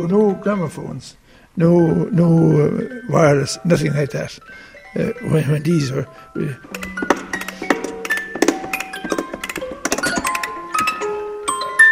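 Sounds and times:
speech: 0.0s - 7.1s
old mechanical device clanking and creaking: 6.7s - 11.1s.

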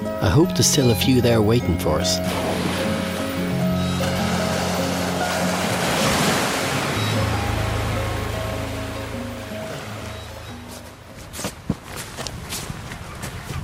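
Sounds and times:
speech: 0.2s - 2.7s
distant seals on coast: 0.3s - 11.1s
wind on coast: 2.2s - 13.6s.

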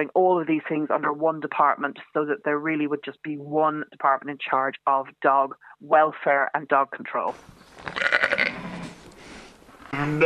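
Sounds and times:
speech: 0.0s - 8.6s, 9.9s - 10.2s
newborn lamb bleating on farm: 7.9s - 8.9s.

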